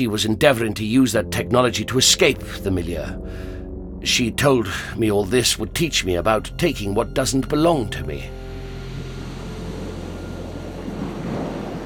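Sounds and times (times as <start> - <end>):
speech: 0.0 - 8.4
sea waves: 8.3 - 11.8.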